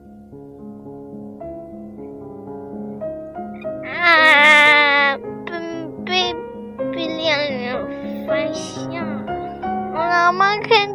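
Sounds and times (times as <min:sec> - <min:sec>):
soft sustained musical tones: 0:00.0 - 0:10.9
kitten meowing: 0:03.7 - 0:05.2.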